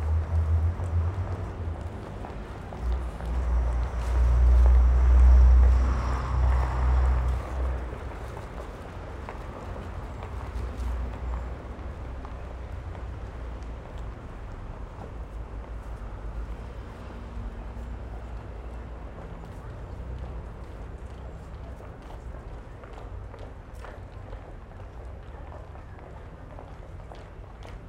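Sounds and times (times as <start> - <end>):
pedestrians walking: 0.0 - 27.8.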